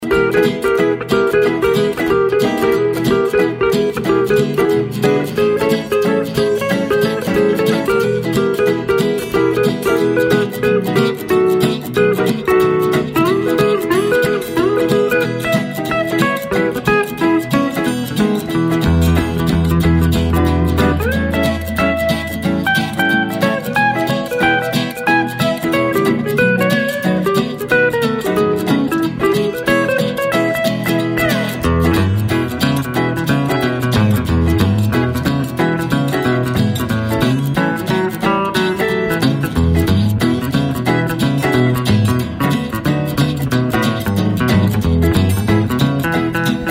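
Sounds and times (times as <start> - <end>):
guitar boogie: 0.0 - 46.7.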